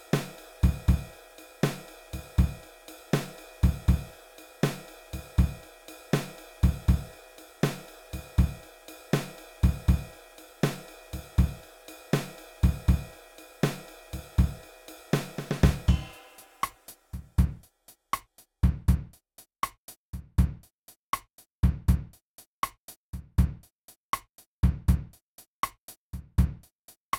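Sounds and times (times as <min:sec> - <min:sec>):
simple blues drums: 0:00.0 - 0:22.2, 0:23.2 - 0:27.1.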